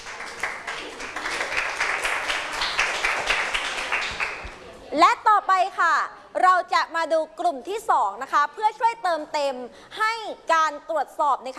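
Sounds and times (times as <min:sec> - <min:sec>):
classroom applause: 0:00.0 - 0:04.6
speech: 0:05.0 - 0:11.5.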